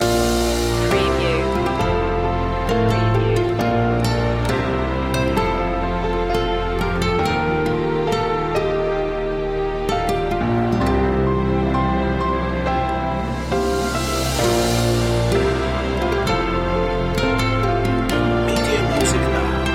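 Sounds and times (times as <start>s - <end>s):
intense main theme music: 0.0s - 19.7s.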